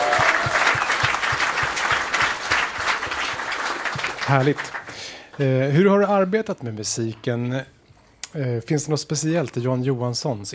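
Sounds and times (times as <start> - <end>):
audience applause: 0.0 - 5.6
speech: 4.3 - 4.8, 5.4 - 10.5.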